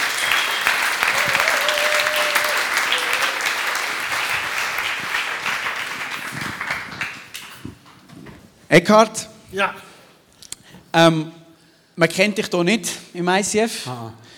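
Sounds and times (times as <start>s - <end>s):
audience applause: 0.0s - 7.8s
speech: 8.7s - 9.8s, 10.9s - 11.4s, 12.0s - 14.2s.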